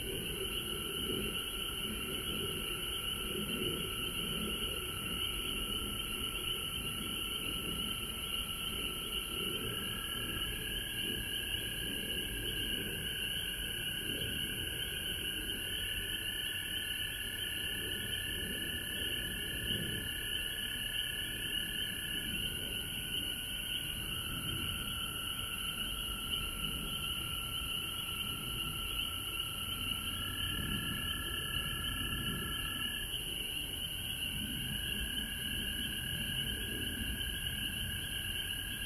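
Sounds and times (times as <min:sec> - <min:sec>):
frogs trilling in chorus: 0:00.0 - 0:38.8.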